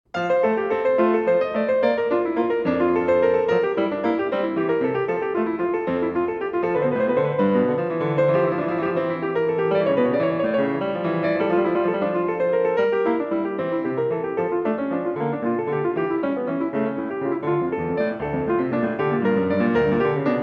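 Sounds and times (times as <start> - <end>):
prelude and fugue: 0.1 - 20.4.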